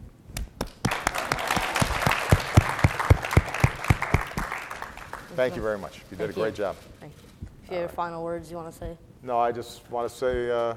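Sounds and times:
round of applause: 0.6s - 5.5s
speech: 5.4s - 10.7s.

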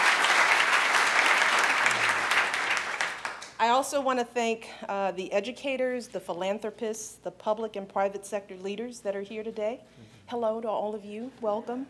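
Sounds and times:
crowd applause: 0.0s - 3.5s
speech: 3.7s - 11.8s.

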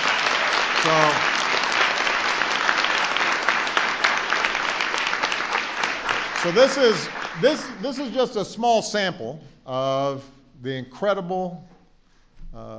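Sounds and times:
audience applause: 0.0s - 8.4s
speech: 6.4s - 11.7s, 12.5s - 12.7s.

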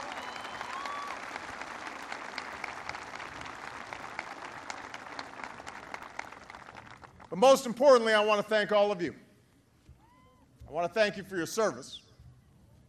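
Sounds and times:
audience applause: 0.0s - 7.3s
speech: 7.3s - 9.2s, 10.8s - 12.0s.

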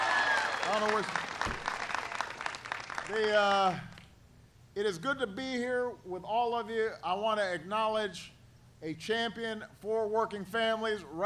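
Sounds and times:
whoops and cheers: 0.0s - 1.1s
crowd applause: 0.0s - 3.1s
speech: 0.7s - 1.6s, 3.1s - 3.9s, 4.8s - 11.2s.

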